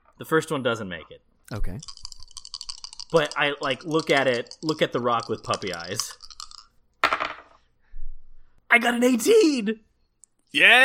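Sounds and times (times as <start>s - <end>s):
speech: 0.2s - 2.0s, 3.1s - 6.2s, 8.8s - 9.9s, 10.5s - 10.8s
dice clattering onto a hard table: 1.6s - 7.6s.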